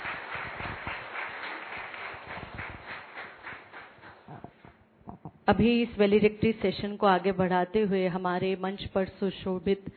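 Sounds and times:
crowd applauding: 0.0 - 4.6
speech: 5.5 - 9.9.

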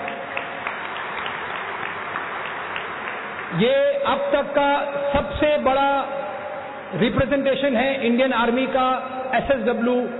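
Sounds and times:
loud audience applause: 0.0 - 3.6
speech: 3.5 - 6.2, 6.9 - 10.1.

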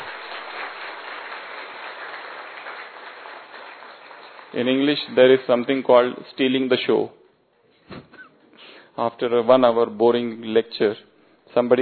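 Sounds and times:
audience clapping: 0.0 - 5.6
speech: 4.5 - 7.2, 9.0 - 11.8.

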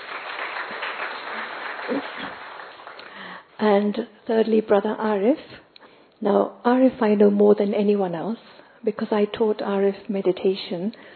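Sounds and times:
audience applause: 0.0 - 3.3
speech: 3.6 - 5.6, 6.2 - 11.1.

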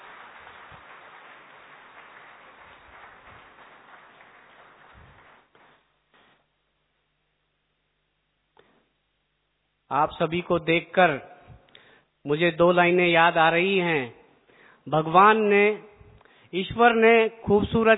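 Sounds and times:
audience applause welcoming a speaker: 0.0 - 6.3
quiet room noise: 0.0 - 17.9
speech: 9.9 - 11.3, 12.2 - 14.2, 14.8 - 15.9, 16.5 - 17.9.

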